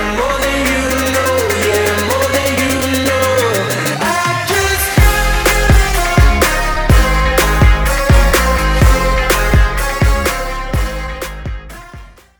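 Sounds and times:
drum beat at 125 BPM: 0:00.2 - 0:12.2.

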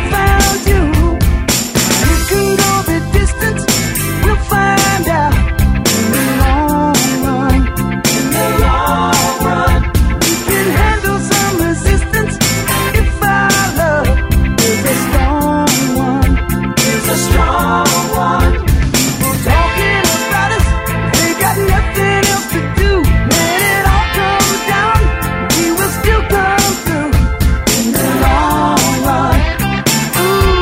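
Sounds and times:
rock drum snippets: 0:00.0 - 0:30.6.

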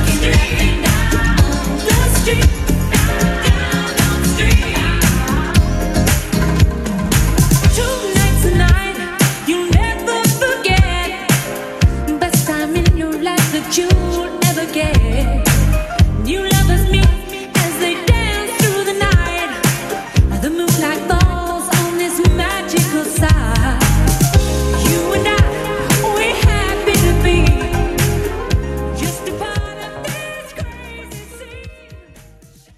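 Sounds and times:
80s drum machine beat: 0:00.0 - 0:32.7.

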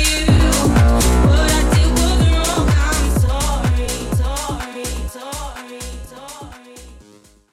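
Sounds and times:
house music edit at 125 BPM: 0:00.2 - 0:05.2.

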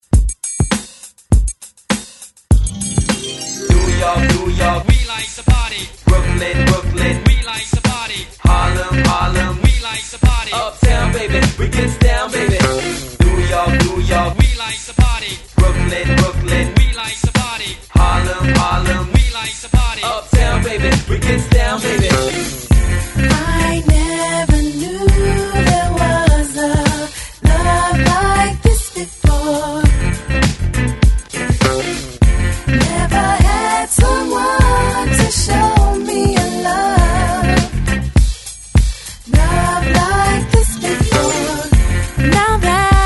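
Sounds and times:
hype remix music at 101 bpm: 0:00.0 - 0:43.0.

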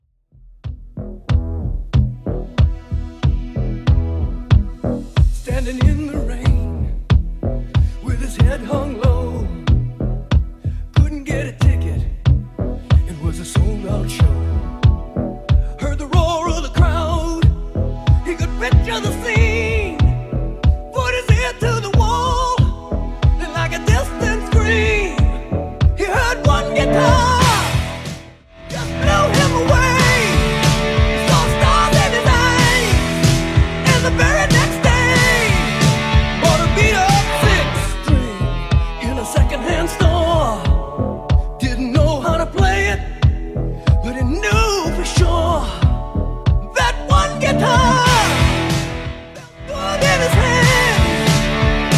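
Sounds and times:
1980s rock drum beat at 93 bpm: 0:00.6 - 0:51.9.

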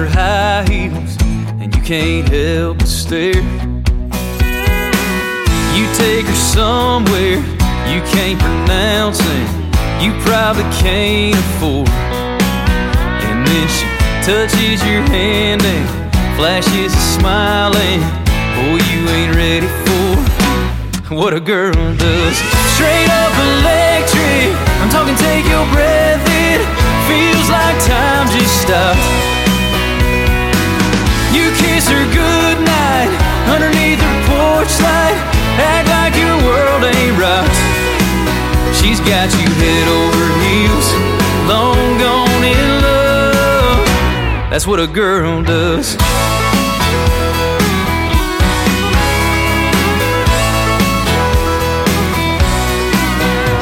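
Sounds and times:
DJ intro outro music: 0:00.2 - 0:53.6.

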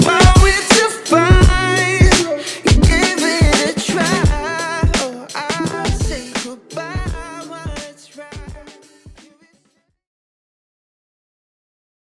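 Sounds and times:
old school hip hop beat at 85 BPM: 0:00.0 - 0:09.3.

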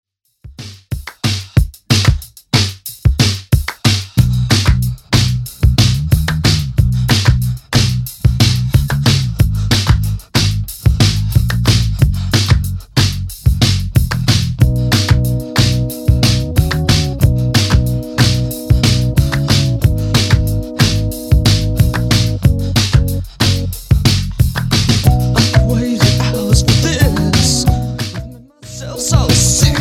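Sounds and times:
80s Redrum drum machine beat: 0:00.4 - 0:29.8.

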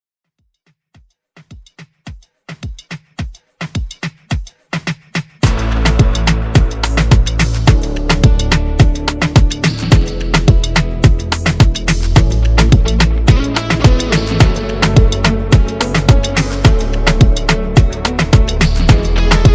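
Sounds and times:
moombahton music: 0:00.3 - 0:19.5.

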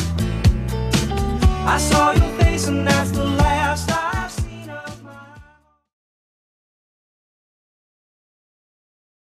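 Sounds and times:
70s-style music loop at 122 bpm: 0:00.0 - 0:05.4.

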